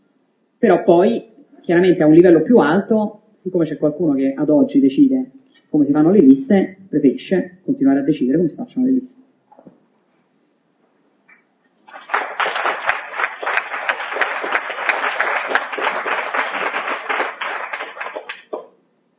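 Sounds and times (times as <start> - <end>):
speech: 0.6 - 9.2
audience applause: 11.8 - 18.8.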